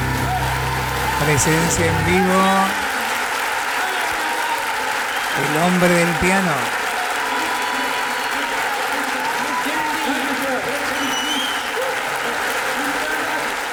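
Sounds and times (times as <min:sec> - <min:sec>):
audience applause ovation: 0:00.0 - 0:13.7
speech: 0:01.2 - 0:02.9, 0:05.4 - 0:06.8.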